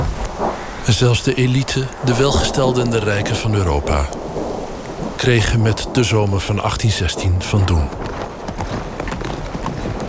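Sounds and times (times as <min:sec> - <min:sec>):
speech: 0:00.9 - 0:04.2, 0:05.2 - 0:08.2
horse hooves clip-clopping: 0:07.6 - 0:10.0
horse-drawn carriage wheels rumbling: 0:07.9 - 0:10.0.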